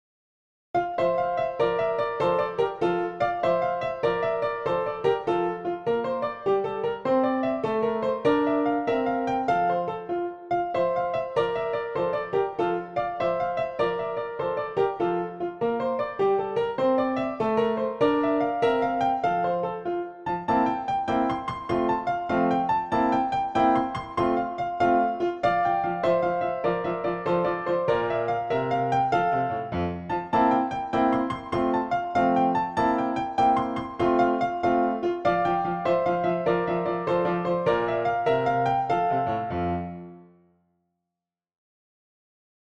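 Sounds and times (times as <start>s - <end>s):
dance music on a PianoTeq Bechstein piano: 0.8s - 40.4s.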